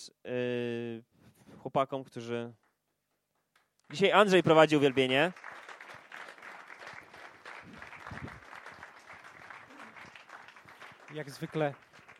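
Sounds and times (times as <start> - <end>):
speech: 0.2 - 0.6, 1.7 - 2.6, 3.9 - 5.6, 11.1 - 11.9
audience applause: 3.9 - 12.1.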